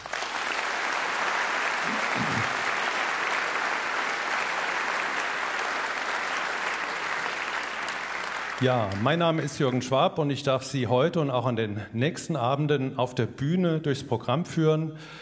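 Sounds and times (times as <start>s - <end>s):
audience applause: 0.0s - 9.8s
speech: 8.6s - 15.2s.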